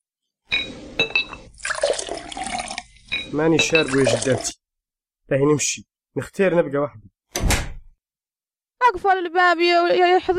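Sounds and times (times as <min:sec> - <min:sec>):
glass clinks: 0:00.5 - 0:01.5, 0:03.1 - 0:04.2
speech: 0:01.0 - 0:01.2, 0:03.3 - 0:04.6, 0:05.3 - 0:07.1, 0:08.9 - 0:10.3
tea pouring into a glass: 0:01.3 - 0:04.6.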